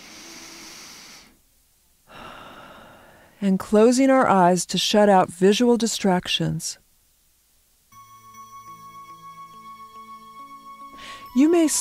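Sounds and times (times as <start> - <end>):
deep cleansing breath during a guided meditation: 0.0 - 1.4, 2.1 - 3.4, 10.9 - 11.3
speech: 3.4 - 6.8, 11.4 - 11.7.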